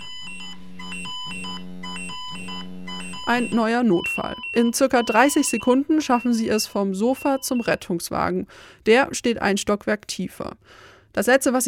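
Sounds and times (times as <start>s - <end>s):
pager alert beeping: 0.0s - 8.1s
speech: 3.3s - 11.6s.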